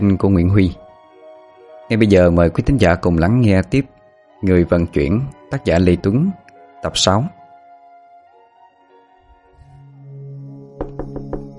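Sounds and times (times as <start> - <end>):
speech: 0.0 - 0.8, 1.9 - 7.4
knocking on a door: 10.8 - 11.5.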